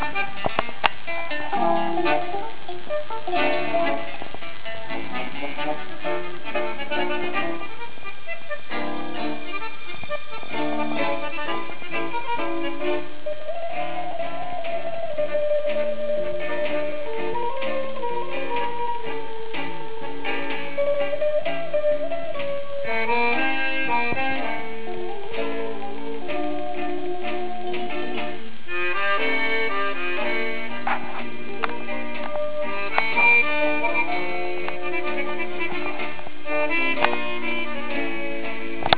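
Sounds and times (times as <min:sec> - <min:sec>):
song: 0:00.0 - 0:38.9.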